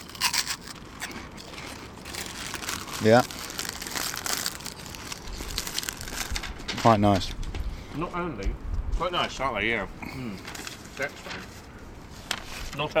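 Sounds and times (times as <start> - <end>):
snack packet crinkling: 0.0 - 6.6
munching crisps: 0.0 - 6.7
speech: 3.0 - 3.4, 6.8 - 7.4, 8.0 - 11.5, 12.8 - 12.9.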